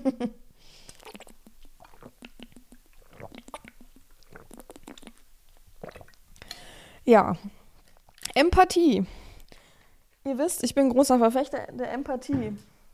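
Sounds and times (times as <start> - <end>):
speech: 0.0 - 0.4, 7.1 - 7.6, 8.4 - 9.2, 10.3 - 12.7
person sipping a drink with wet mouth clicks and swallowing: 0.7 - 6.9.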